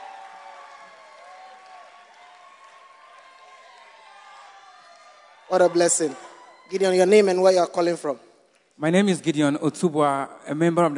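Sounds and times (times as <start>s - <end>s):
audience clapping: 0.0s - 6.2s
speech: 5.5s - 8.2s, 8.8s - 10.9s.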